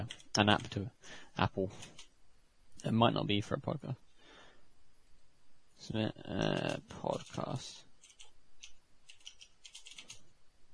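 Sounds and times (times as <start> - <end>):
typing on a computer keyboard: 0.0 - 0.7, 6.6 - 10.2
speech: 0.0 - 2.1, 2.8 - 4.0, 5.8 - 7.8.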